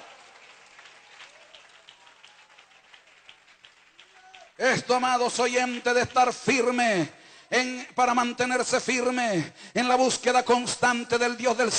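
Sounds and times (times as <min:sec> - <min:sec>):
audience applauding: 0:00.0 - 0:06.3
speech: 0:04.6 - 0:11.7.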